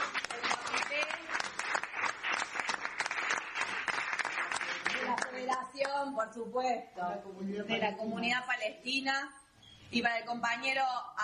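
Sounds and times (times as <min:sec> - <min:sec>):
audience applause: 0:00.0 - 0:05.6
speech: 0:06.0 - 0:11.2.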